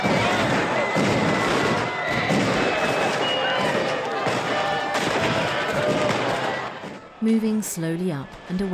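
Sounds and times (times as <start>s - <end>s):
New Year bangers exploding on the ground: 0.0s - 7.0s
guns fired into the air at a street party: 0.0s - 7.0s
noisy crowd at a street party around a bonfire: 0.0s - 8.7s
speech: 7.3s - 8.7s.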